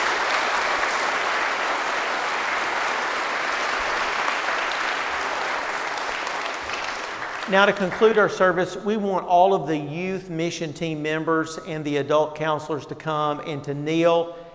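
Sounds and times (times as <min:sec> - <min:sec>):
audience applause: 0:00.0 - 0:08.3
speech: 0:07.5 - 0:14.4.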